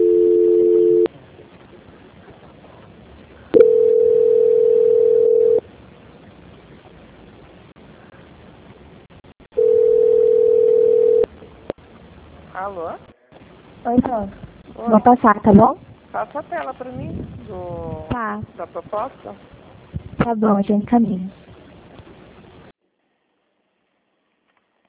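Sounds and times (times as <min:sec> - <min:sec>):
telephone dial tone during a call transfer: 0:00.0 - 0:01.1, 0:03.6 - 0:05.6, 0:09.6 - 0:11.3
speech: 0:14.0 - 0:19.6, 0:20.2 - 0:21.4.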